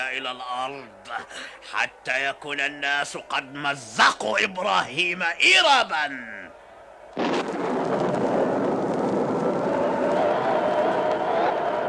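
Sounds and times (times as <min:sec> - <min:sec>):
speech: 0:00.0 - 0:06.5
Tower of Babel collapsing with a crash and roaring rumble in a radio drama: 0:07.2 - 0:11.0.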